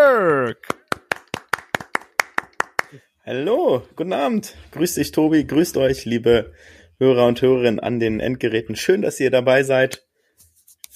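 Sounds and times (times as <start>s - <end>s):
applause: 0.6s - 3.0s
speech: 2.9s - 10.0s.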